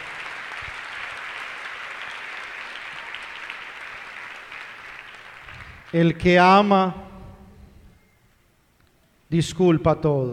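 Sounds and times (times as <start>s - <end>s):
crowd applause: 0.0s - 6.7s
speech: 5.9s - 7.0s, 9.3s - 10.3s.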